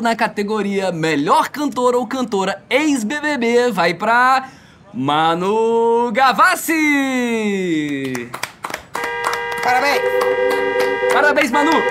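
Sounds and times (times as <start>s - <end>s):
speech: 0.0s - 8.5s, 9.6s - 11.9s
sharp irregular hand claps: 7.8s - 11.9s.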